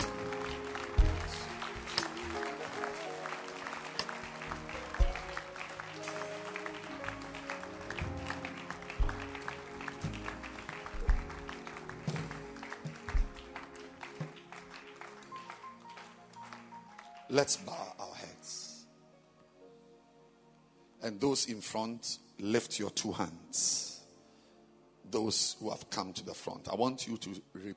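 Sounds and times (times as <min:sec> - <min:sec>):
audience clapping: 0:00.0 - 0:17.7
speech: 0:17.3 - 0:17.8, 0:21.1 - 0:23.8, 0:25.2 - 0:27.7.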